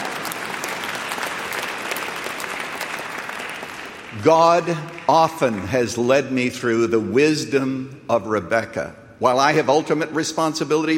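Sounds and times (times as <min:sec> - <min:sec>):
audience applause: 0:00.0 - 0:05.7
speech: 0:04.2 - 0:10.9.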